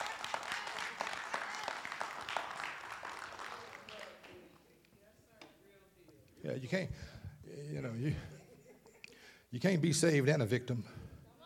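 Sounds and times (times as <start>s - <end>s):
audience clapping hands: 0.0s - 4.8s
speech: 6.4s - 8.4s, 9.5s - 11.0s
laughter: 7.8s - 9.4s.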